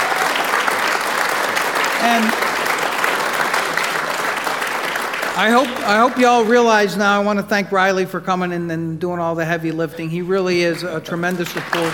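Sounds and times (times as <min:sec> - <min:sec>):
audience applause: 0:00.0 - 0:07.0, 0:10.7 - 0:11.9
speech: 0:02.0 - 0:02.5, 0:05.4 - 0:11.9.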